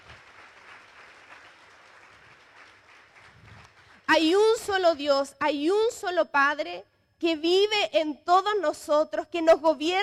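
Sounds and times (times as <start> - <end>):
welcoming applause from audience: 0.0 - 4.1
speech: 4.1 - 10.0.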